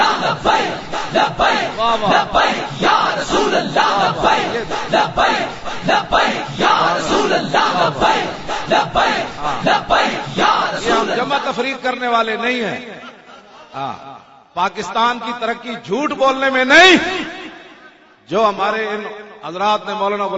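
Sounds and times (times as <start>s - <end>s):
crowd outside chanting the Labbaik slogan: 0.0s - 11.7s
speech: 1.1s - 6.4s, 11.5s - 17.4s, 18.3s - 20.3s.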